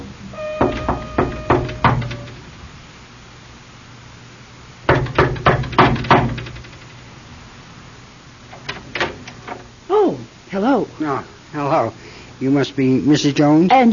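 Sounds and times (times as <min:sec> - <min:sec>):
knocking on a door: 0:00.6 - 0:02.4, 0:04.9 - 0:06.7
speech: 0:10.6 - 0:13.9.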